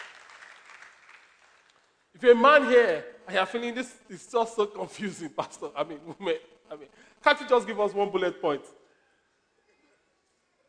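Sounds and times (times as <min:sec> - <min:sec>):
audience clapping: 0:00.0 - 0:02.1
speech: 0:02.2 - 0:08.8.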